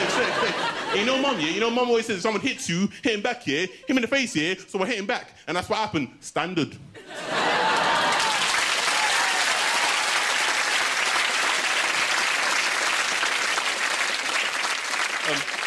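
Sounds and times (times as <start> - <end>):
laughter: 0.0 - 4.6, 7.0 - 8.6
speech: 0.9 - 7.7, 15.3 - 15.6
audience clapping: 7.4 - 15.6.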